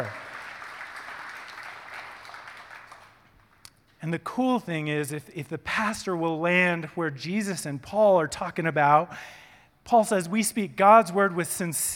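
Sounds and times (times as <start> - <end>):
speech: 0.0 - 0.2, 4.0 - 11.9
audience applauding: 0.0 - 3.6.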